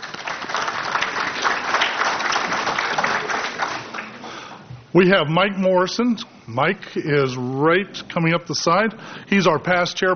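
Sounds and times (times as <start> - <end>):
audience round of applause: 0.0 - 4.5
speech: 4.9 - 10.1.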